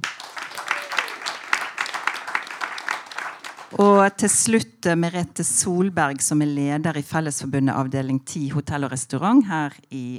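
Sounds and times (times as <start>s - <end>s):
audience applause: 0.0s - 3.8s
speech: 3.7s - 10.1s.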